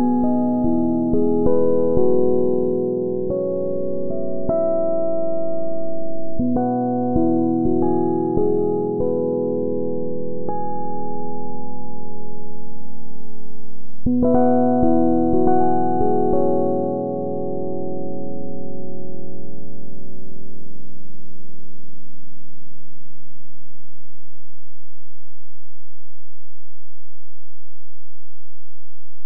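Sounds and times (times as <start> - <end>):
improvised music loop: 0.0 - 19.6.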